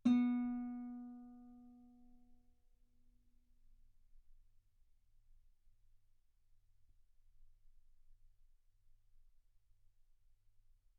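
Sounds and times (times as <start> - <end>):
guitar B3 note on B string played fortissimo: 0.0 - 1.4.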